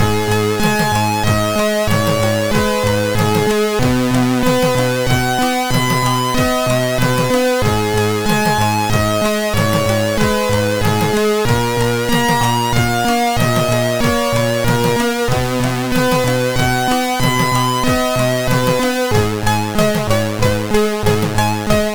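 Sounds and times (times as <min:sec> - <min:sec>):
chiptune on MOS6581R4 SID chip: 0:00.0 - 0:21.9.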